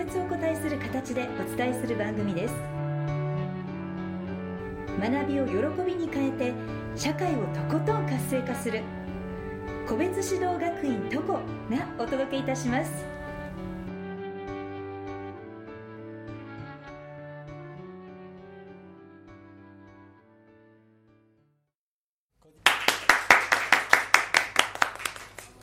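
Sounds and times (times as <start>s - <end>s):
melodic music passage: 0.0s - 20.7s
speech: 1.0s - 2.8s, 5.0s - 9.0s, 9.9s - 13.2s
audience hand clapping: 22.5s - 25.6s.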